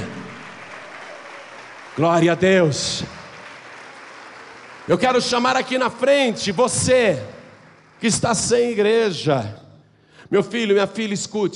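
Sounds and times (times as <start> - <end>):
church audience applauding: 0.0 - 9.0
speech: 2.0 - 3.2, 4.9 - 7.4, 8.0 - 9.6, 10.2 - 11.5.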